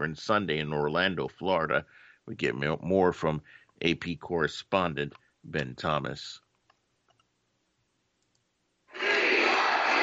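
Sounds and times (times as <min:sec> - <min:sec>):
speech: 0:00.0 - 0:06.4
large conference crowd cheering and shouting: 0:09.0 - 0:10.0.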